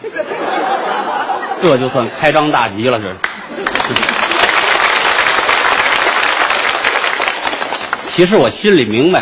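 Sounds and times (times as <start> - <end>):
laughter: 0.0 - 2.3, 3.2 - 4.7
speech: 1.6 - 3.3, 8.2 - 9.1
audience applause: 3.2 - 8.3.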